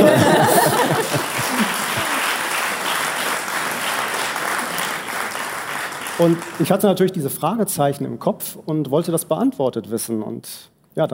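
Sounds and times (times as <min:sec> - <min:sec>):
laughter: 0:00.0 - 0:02.2
audience clapping: 0:00.0 - 0:07.0
speech: 0:06.2 - 0:11.1.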